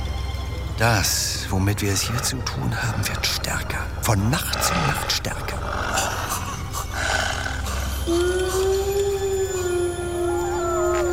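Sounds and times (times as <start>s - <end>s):
low rumbling background: 0.0s - 11.1s
speech: 0.8s - 5.8s, 8.1s - 8.4s
village dogs howling together: 4.4s - 11.1s.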